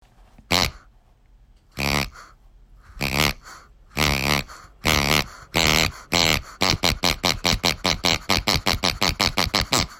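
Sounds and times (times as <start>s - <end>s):
pig oinking: 1.8s - 2.3s, 2.9s - 9.9s.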